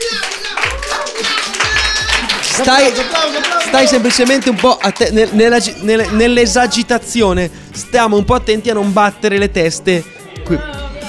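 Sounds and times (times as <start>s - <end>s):
applause: 0.0s - 5.2s
speech: 2.6s - 10.8s.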